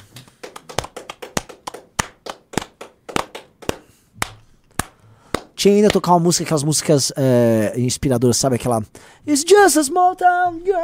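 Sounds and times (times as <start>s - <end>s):
clapping: 0.1s - 6.0s
speech: 5.6s - 10.8s.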